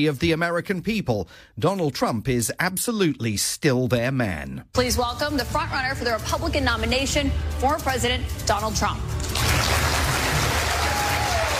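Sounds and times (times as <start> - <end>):
speech: 0.0 - 9.9
audience of Republicans whooping and cheering at a televised town hall in New Hampshire: 9.4 - 11.5.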